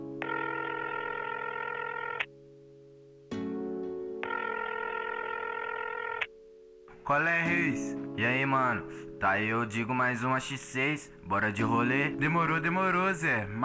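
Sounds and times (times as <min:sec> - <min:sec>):
telephone ringing: 0:00.0 - 0:13.6
speech: 0:07.1 - 0:13.6.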